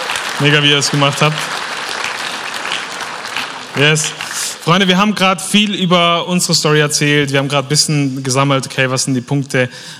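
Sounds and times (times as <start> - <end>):
audience applause: 0.0 - 4.9
speech: 0.4 - 1.6, 3.8 - 9.9.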